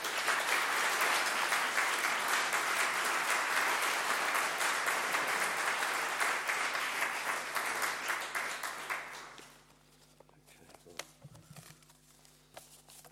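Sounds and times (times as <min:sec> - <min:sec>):
audience applause welcoming a councillor to a lecture in Warfield: 0:00.0 - 0:09.6.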